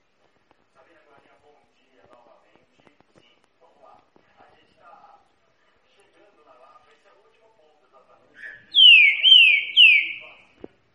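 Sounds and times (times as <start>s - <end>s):
green-winged saltator song of slurred whistles: 8.4s - 10.4s.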